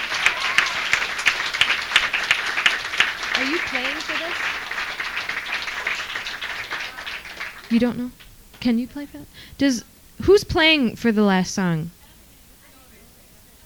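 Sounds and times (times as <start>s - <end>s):
audience applause: 0.0s - 8.3s
speech: 3.5s - 4.5s, 7.7s - 12.0s.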